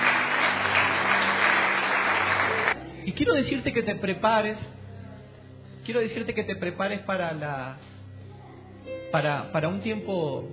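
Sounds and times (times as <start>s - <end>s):
crowd applause: 0.0s - 2.8s
speech: 3.1s - 4.8s, 5.8s - 7.9s, 9.1s - 10.5s.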